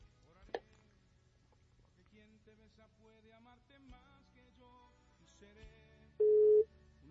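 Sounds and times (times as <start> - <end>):
ringback tone from a redialed telephone call: 6.2 - 6.6.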